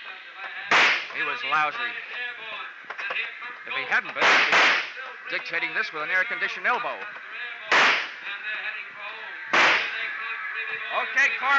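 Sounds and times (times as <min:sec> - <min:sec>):
gunshots in a rooftop shootout in a radio drama: 0:00.7 - 0:01.2, 0:04.2 - 0:05.0, 0:07.7 - 0:08.2, 0:09.5 - 0:10.3
speech: 0:01.2 - 0:02.2, 0:03.2 - 0:07.4, 0:10.9 - 0:11.5.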